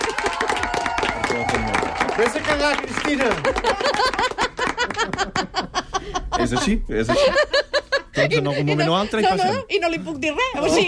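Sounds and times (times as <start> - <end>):
cheering: 0.0 - 3.4
applause: 0.0 - 5.4
speech: 2.2 - 4.3, 6.4 - 7.6, 8.2 - 10.8
laughter: 3.1 - 9.2.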